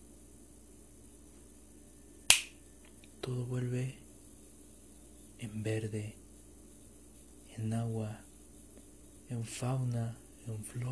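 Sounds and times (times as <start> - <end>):
quiet hum: 0.0 - 10.9
finger snap: 2.2 - 3.4
speech: 3.3 - 4.0, 5.4 - 6.2, 7.6 - 8.3, 9.3 - 10.9.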